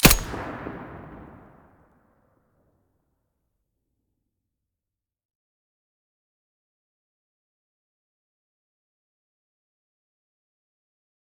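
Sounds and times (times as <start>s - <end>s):
weapon muzzle blasts: 0.0s - 1.7s.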